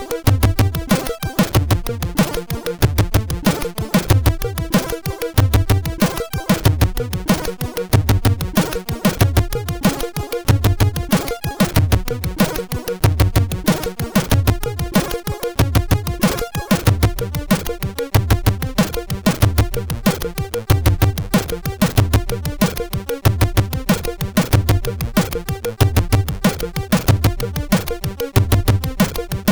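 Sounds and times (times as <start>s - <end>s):
hyper aggressive SID chip synth: 0.0s - 29.4s.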